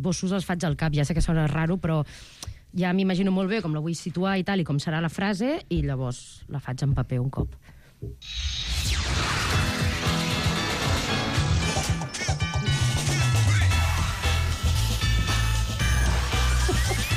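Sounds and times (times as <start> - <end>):
speech: 0.0 - 10.2
upbeat animated TV series opening theme music: 8.8 - 17.1.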